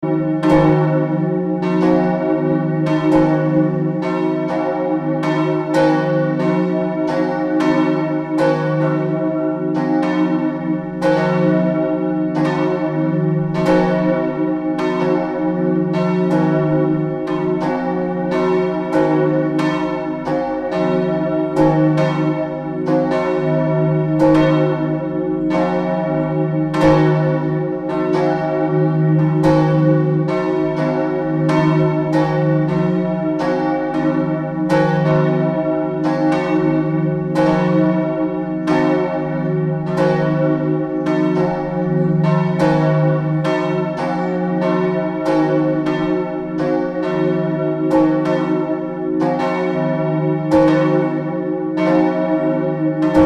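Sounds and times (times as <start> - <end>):
bells of Steinwedel ringing: 0.0 - 53.2.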